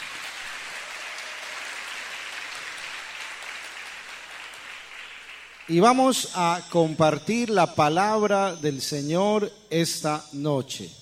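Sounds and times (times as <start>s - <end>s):
audience applause: 0.0s - 5.7s
speech: 5.7s - 11.0s.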